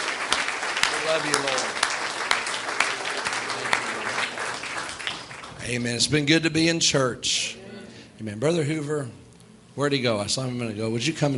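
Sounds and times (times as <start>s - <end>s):
audience applause: 0.0s - 5.7s
speech: 1.1s - 1.8s, 5.7s - 7.6s, 8.2s - 9.2s, 9.8s - 11.3s.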